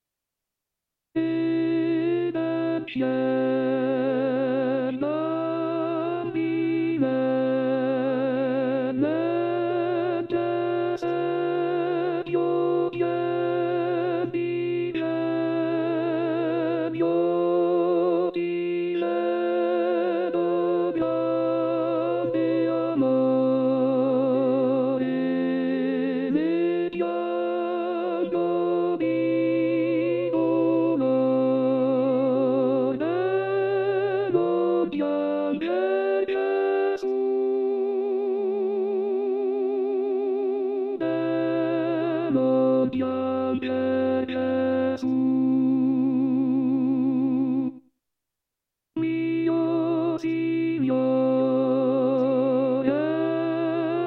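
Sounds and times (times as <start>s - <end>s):
contralto voices singing: 1.2s - 47.8s, 49.0s - 54.0s.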